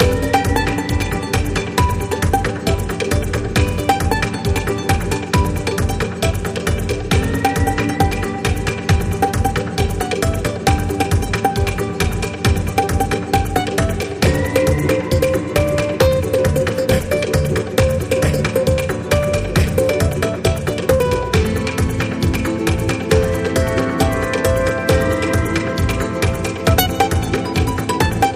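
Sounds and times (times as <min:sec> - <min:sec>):
bonus music loop: 0:00.0 - 0:28.3.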